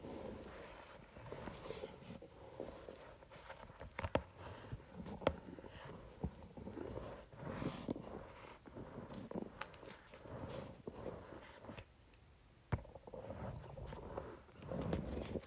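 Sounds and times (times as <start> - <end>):
facial roller rolling over paper: 0.0 - 11.8, 13.2 - 15.4.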